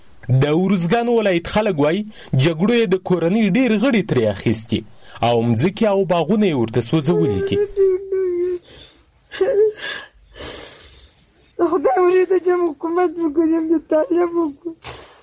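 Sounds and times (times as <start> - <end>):
speech: 0.3 - 8.0, 9.4 - 9.7, 11.6 - 15.0
woman crying in grief in Uruzgan, Afghanistan: 7.0 - 10.2, 11.6 - 15.2.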